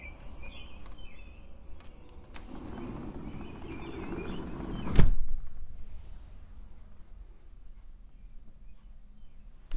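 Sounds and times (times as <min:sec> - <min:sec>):
morning birds singing: 0:00.0 - 0:05.0, 0:08.0 - 0:09.7
door opening: 0:02.1 - 0:05.5.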